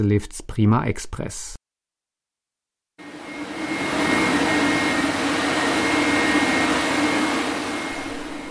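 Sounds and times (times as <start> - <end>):
speech: 0.0 - 1.6
water pump station for artificial snow: 3.0 - 8.4.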